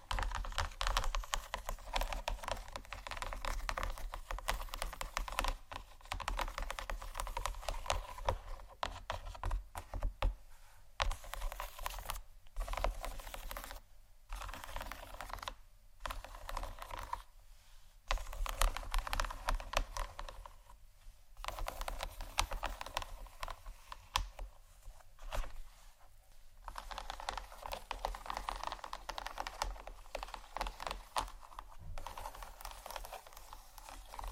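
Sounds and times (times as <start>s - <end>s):
gentle scratching: 0.0s - 34.3s.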